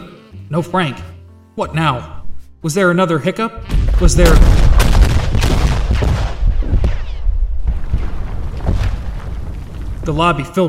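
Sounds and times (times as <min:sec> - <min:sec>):
speech: 0:00.5 - 0:04.8, 0:10.1 - 0:10.6
loud explosions: 0:03.6 - 0:10.5.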